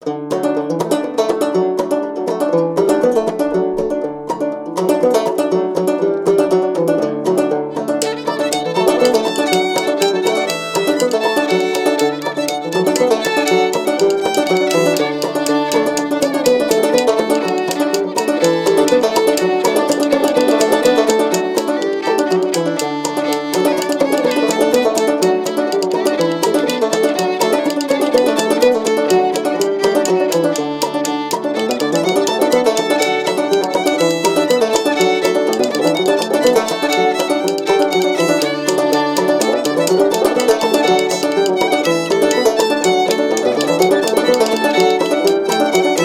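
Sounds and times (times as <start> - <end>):
banjo: 0.0 - 46.0.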